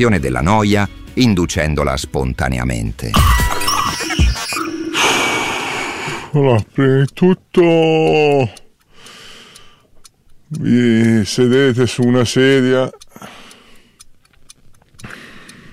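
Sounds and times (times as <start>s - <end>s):
speech: 0.0s - 3.4s, 6.3s - 8.6s, 10.5s - 13.4s
voice imitating a large clock ticking: 3.1s - 15.7s.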